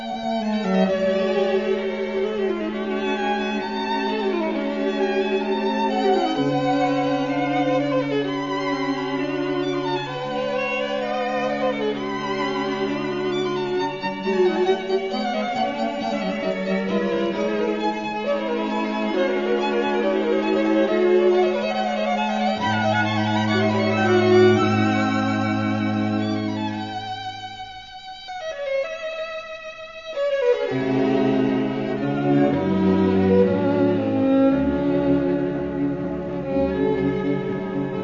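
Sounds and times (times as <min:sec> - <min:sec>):
string quartet playing in D major: 0:00.0 - 0:38.0.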